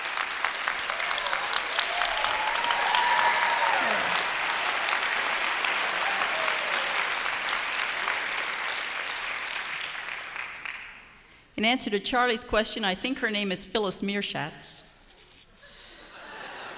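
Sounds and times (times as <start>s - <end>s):
audience applauding a fiddler from Randolph County West Virginia: 0.0s - 11.0s
speech: 11.6s - 14.8s
laughter: 15.8s - 16.7s.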